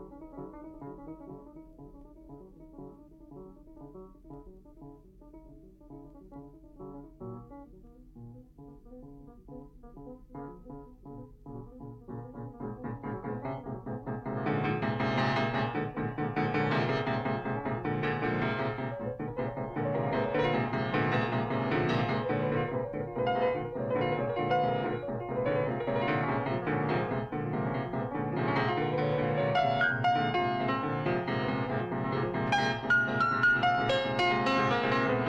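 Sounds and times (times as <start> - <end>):
piano percussion: 11.8 - 35.2.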